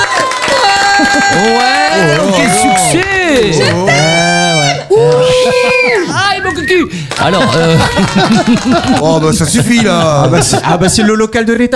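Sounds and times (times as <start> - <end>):
applause: 0.0 - 3.1, 7.0 - 9.5
laughter: 0.6 - 2.8, 4.9 - 6.4, 7.1 - 11.4
speech: 1.2 - 11.7.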